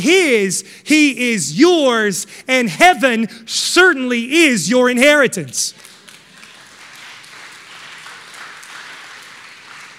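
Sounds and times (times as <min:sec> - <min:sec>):
speech: 0:00.0 - 0:05.9
audience clapping: 0:05.7 - 0:09.9.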